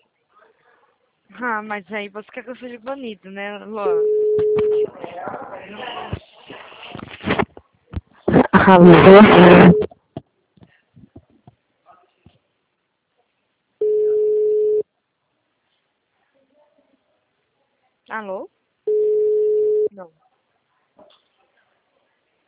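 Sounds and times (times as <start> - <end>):
speech: 1.4 - 6.2, 8.7 - 9.9
telephone busy tone from a call that does not get through: 3.9 - 4.9, 9.2 - 9.9, 13.8 - 14.8, 18.9 - 19.9.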